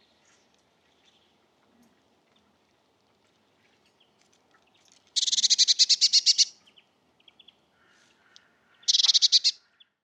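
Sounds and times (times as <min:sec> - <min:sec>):
Cyanistes caeruleus calling: 0:05.2 - 0:06.5, 0:08.8 - 0:09.6.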